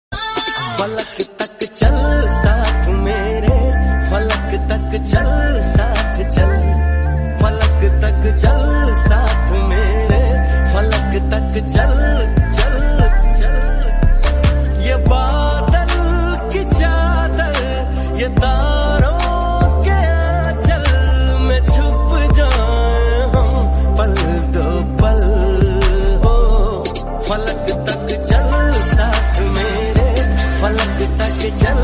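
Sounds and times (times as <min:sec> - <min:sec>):
remix ringtone background music: 0:00.1 - 0:31.8.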